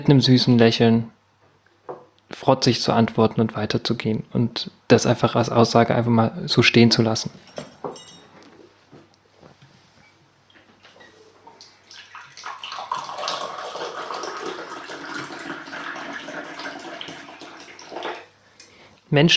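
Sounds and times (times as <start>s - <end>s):
speech: 0.0s - 1.2s, 2.3s - 8.0s, 19.2s - 19.3s
faint clinks: 7.4s - 8.5s
ginger tea pouring from a pot into a cup: 11.9s - 18.3s.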